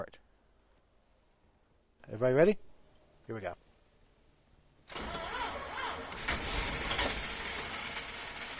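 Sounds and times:
speech: 2.1 - 2.7, 3.3 - 3.6
car engine cranking as it tries to start: 4.9 - 8.5.

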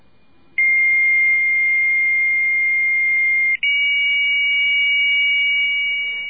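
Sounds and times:
computer modem answering tone: 0.6 - 6.2.

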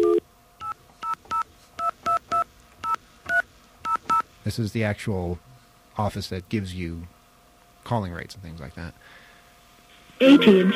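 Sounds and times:
touch-tone phone dialing beeps: 0.0 - 4.2
speech: 4.4 - 7.2, 7.8 - 9.2, 10.2 - 10.7.

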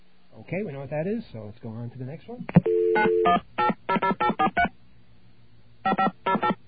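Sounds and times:
speech: 0.5 - 4.7
telephone dialing tones: 2.6 - 4.7, 5.9 - 6.6.

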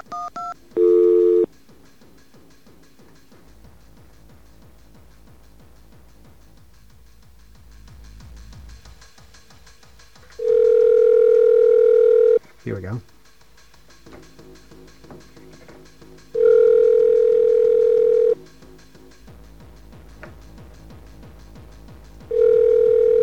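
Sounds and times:
telephone dialing tones: 0.0 - 1.5, 10.5 - 12.4, 16.4 - 18.4, 22.4 - 23.2.

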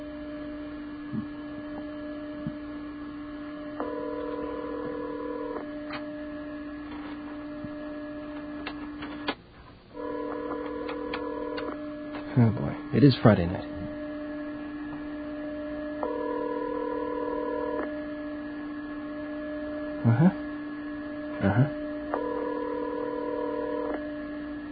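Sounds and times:
electrical hum: 0.0 - 24.6
telephone ringing tone over a phone line: 3.7 - 6.4, 10.0 - 14.5, 15.1 - 18.0, 21.3 - 24.1
speech: 12.4 - 13.8.

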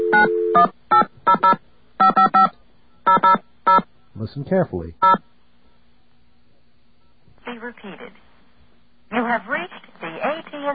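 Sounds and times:
touch-tone telephone dialing tones: 0.0 - 2.5, 3.1 - 3.8
speech: 0.2 - 1.6, 4.3 - 5.3.

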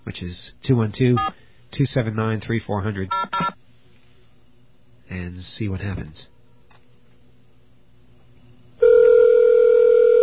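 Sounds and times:
speech: 0.1 - 3.4, 5.1 - 6.3
telephone ringing tone: 8.8 - 10.2.

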